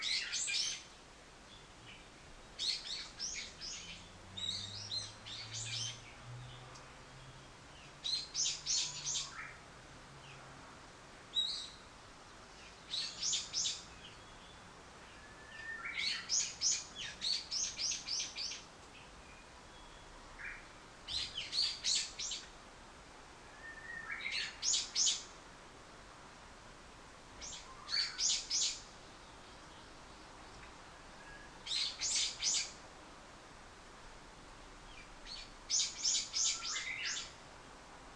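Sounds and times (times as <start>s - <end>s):
bird: 0.0s - 9.6s, 11.3s - 11.9s, 12.5s - 22.5s, 23.5s - 25.3s, 27.4s - 32.8s, 34.9s - 37.4s.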